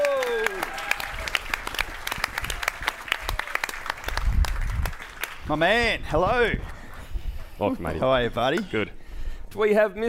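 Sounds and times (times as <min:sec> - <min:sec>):
audience applause: 0:00.0 - 0:05.7
speech: 0:05.5 - 0:06.8, 0:07.6 - 0:10.0.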